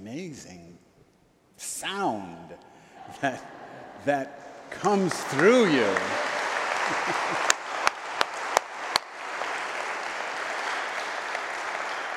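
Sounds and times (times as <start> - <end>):
speech: 0.1 - 0.7, 1.8 - 6.2, 6.9 - 7.5
laughter: 3.0 - 8.2
audience applause: 4.7 - 12.1
loud individual claps: 5.1 - 12.1.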